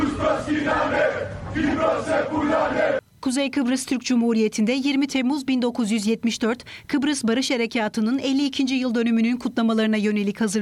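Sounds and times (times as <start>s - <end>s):
Greek Cypriot protest crowd chanting anti-Turkey slogans at a demonstration in Cyprus: 0.0s - 3.0s
speech: 1.8s - 10.5s.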